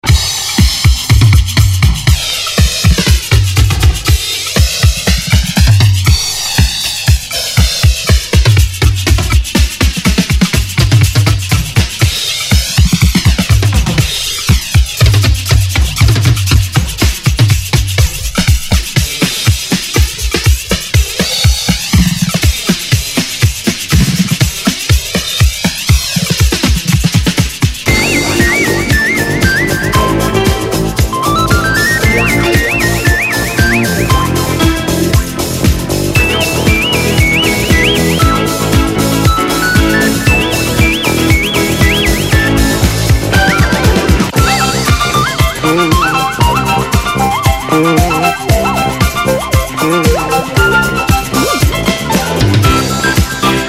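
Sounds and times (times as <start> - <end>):
disco music: 0.0 - 53.6.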